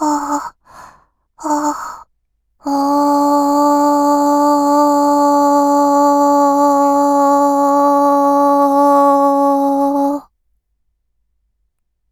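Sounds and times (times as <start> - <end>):
person vocalizing a long ah: 0.0 - 0.8, 1.4 - 2.0, 2.6 - 10.2.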